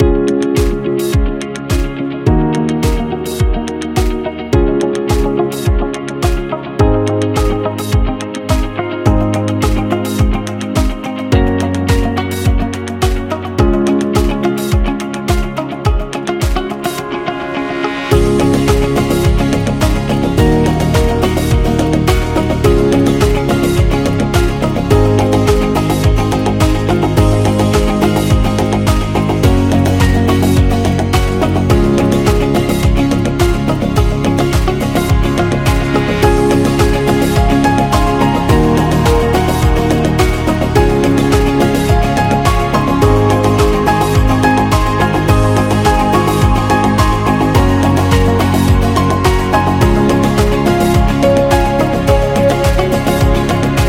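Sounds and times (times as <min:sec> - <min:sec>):
friendly background music: 0:00.0 - 0:53.8.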